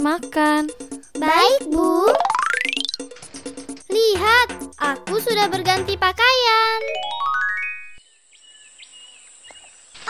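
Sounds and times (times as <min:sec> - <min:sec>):
speech: 0:00.0 - 0:02.4, 0:04.0 - 0:07.1
rising chime notes: 0:01.9 - 0:03.2, 0:06.8 - 0:08.0.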